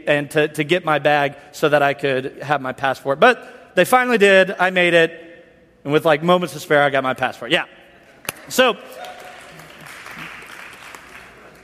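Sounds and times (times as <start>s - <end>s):
speech: 0.0s - 5.2s, 5.8s - 7.8s, 8.5s - 9.1s
audience clapping: 8.1s - 11.6s.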